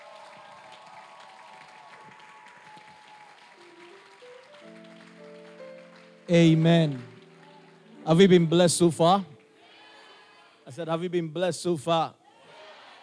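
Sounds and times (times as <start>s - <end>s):
audience clapping hands: 0.0s - 10.4s
speech: 6.3s - 7.1s, 8.0s - 9.3s, 10.7s - 12.2s.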